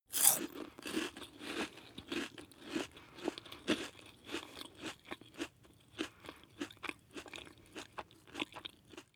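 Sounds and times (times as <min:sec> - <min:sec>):
chewing one piece of biscuit: 0:00.1 - 0:09.1.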